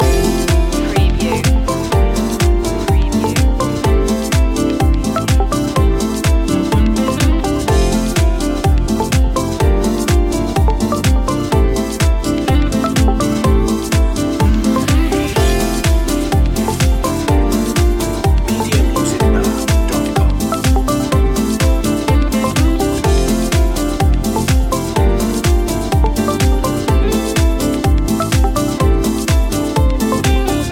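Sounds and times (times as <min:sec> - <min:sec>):
summertime beat loop: 0:00.0 - 0:30.6.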